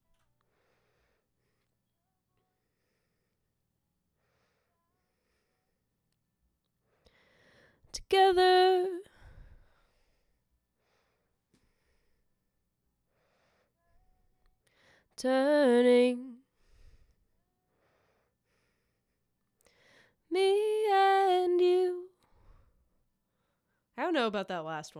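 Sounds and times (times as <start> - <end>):
vocal harmony: 7.9 - 9.3, 15.2 - 16.4, 20.3 - 22.2.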